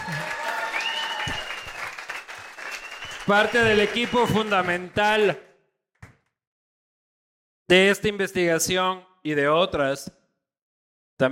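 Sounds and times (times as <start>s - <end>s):
audience applause: 0.0s - 5.4s
speech: 3.3s - 5.5s, 7.7s - 10.2s.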